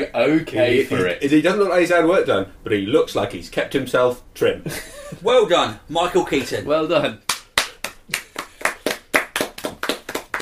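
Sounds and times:
speech: 0.0 - 7.3
applause, hands clapping: 7.2 - 10.4.

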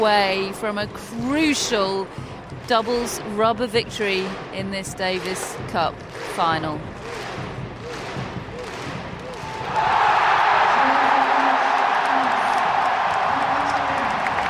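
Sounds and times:
speech: 0.0 - 7.3
tennis stadium crowd in Lille applauding and cheering at a Davis Cup final: 4.2 - 14.4.

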